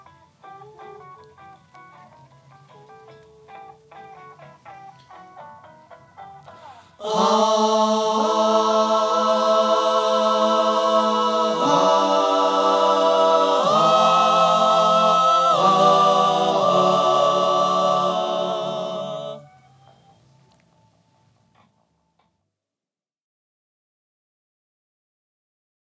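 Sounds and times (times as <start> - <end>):
vocal mix music: 6.5 - 19.8.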